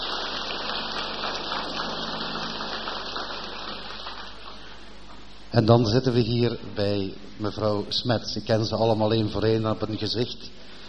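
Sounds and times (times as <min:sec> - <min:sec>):
audience applause: 0:00.0 - 0:04.8
speech: 0:05.5 - 0:10.7.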